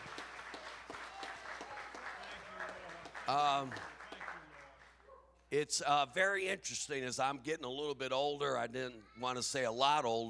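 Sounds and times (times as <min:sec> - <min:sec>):
audience clapping in praise: 0:00.0 - 0:05.0
speech: 0:03.3 - 0:03.9, 0:05.5 - 0:10.2.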